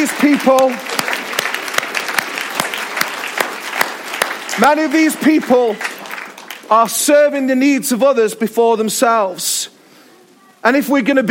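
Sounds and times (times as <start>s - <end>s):
speech: 0.0s - 1.1s, 4.6s - 5.9s, 6.7s - 9.7s, 10.6s - 11.2s
audience applause: 0.0s - 7.1s.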